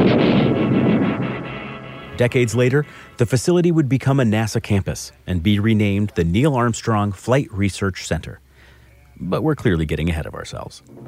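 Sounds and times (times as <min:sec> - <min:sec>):
sonic boom of jet breaking the sound barrier: 0:00.0 - 0:03.3
speech: 0:02.2 - 0:08.4, 0:09.2 - 0:11.0.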